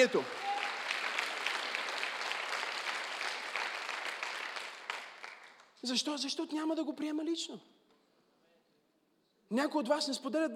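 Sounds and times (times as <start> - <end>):
speech: 0.0 - 0.4, 5.8 - 7.8, 9.5 - 10.5
audience applauding: 0.0 - 5.8.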